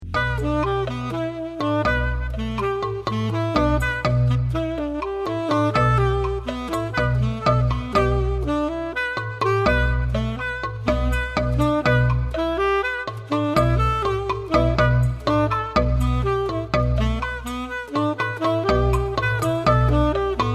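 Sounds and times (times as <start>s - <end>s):
balafon: 0.0s - 20.5s.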